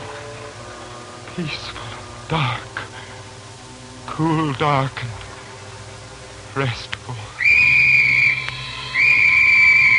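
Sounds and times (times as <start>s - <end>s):
speech: 1.4s - 2.7s, 4.2s - 5.2s, 6.6s - 7.3s
train whistle: 7.4s - 9.9s.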